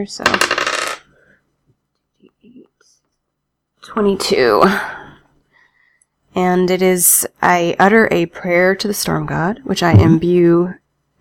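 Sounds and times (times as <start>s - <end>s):
speech: 0.0s - 0.8s, 3.9s - 5.0s, 6.4s - 11.1s
dice rattling and clattering across a hard surface: 0.2s - 1.0s.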